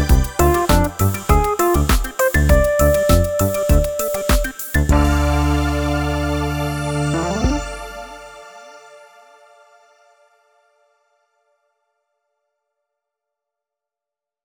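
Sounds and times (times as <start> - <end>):
music track: 0.0 - 8.8.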